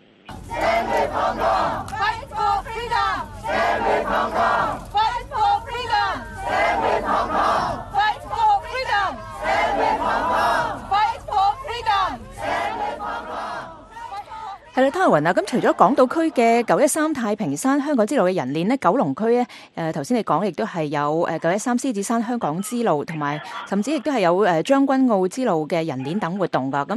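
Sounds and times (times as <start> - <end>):
protest crowd chanting slogans: 0.3 - 16.8
speech: 14.8 - 26.9.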